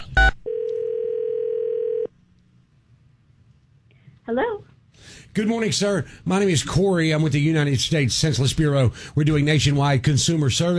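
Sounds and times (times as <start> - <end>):
telephone dial tone while calling: 0.4 - 2.1
speech: 4.3 - 10.7.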